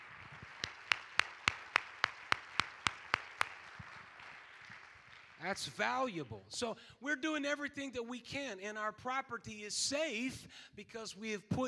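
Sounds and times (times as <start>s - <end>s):
audience hand clapping: 0.0s - 6.4s
speech: 5.4s - 11.6s.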